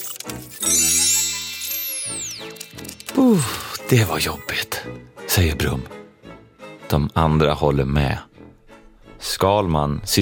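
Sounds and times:
robot whirring as it bends and rises: 0:00.0 - 0:04.5
speech: 0:03.2 - 0:06.0, 0:06.9 - 0:08.3, 0:09.2 - 0:10.2.

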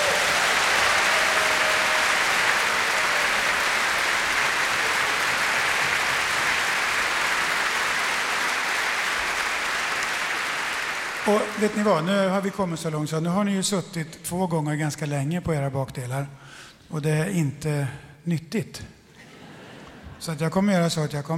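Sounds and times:
audience applause: 0:00.0 - 0:12.1
speech: 0:11.3 - 0:19.0, 0:20.2 - 0:21.3.

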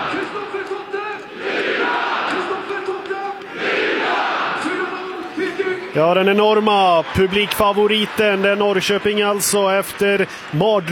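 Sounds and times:
stadium crowd cheering after a goal: 0:00.0 - 0:10.9
speech: 0:06.0 - 0:10.9.

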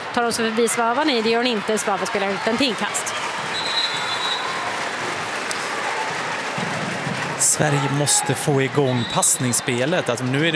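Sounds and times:
large stadium crowd roaring: 0:00.0 - 0:10.4
speech: 0:00.2 - 0:03.3, 0:07.6 - 0:10.5
shrill whistles: 0:03.5 - 0:04.6.

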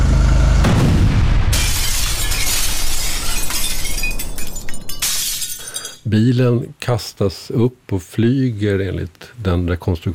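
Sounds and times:
bomb explosion boom: 0:00.6 - 0:03.0
crackling debris rattling: 0:01.4 - 0:06.1
glass shattering: 0:01.5 - 0:06.1
speech: 0:06.2 - 0:10.1.

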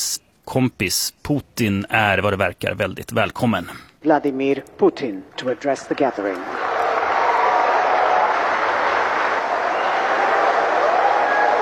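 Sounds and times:
speech: 0:00.5 - 0:06.6
audience at a BRICS business forum applauding: 0:05.9 - 0:11.6.

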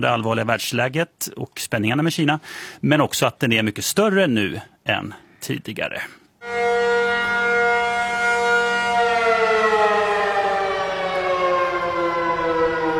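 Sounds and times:
speech: 0:00.0 - 0:06.2
civil defense all-clear siren in subway: 0:06.4 - 0:12.9.

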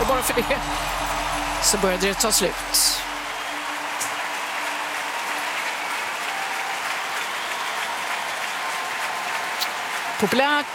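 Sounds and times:
audience applause in a full arena: 0:00.0 - 0:10.7
speech: 0:00.2 - 0:03.0, 0:10.2 - 0:10.7.

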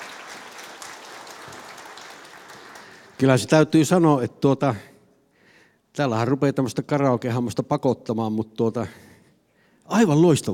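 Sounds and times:
live audience applause at a Finnish radio event: 0:00.0 - 0:03.4
speech: 0:03.2 - 0:04.9, 0:06.0 - 0:09.1, 0:09.9 - 0:10.5.

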